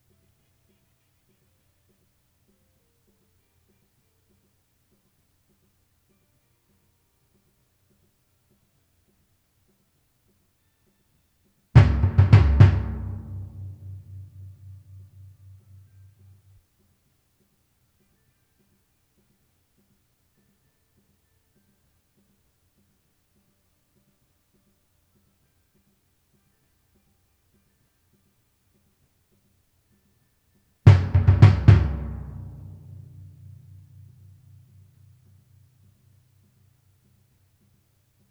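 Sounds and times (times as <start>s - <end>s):
timpani: 11.8s - 16.0s, 30.9s - 34.3s.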